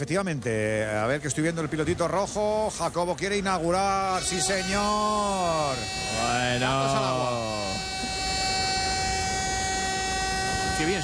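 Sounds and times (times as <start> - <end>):
speech: 0.0 - 7.8, 10.8 - 11.0
alarm: 4.1 - 11.0.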